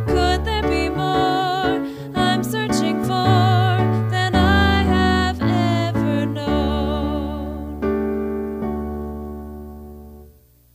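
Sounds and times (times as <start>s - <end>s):
vocals: 0.0s - 8.0s.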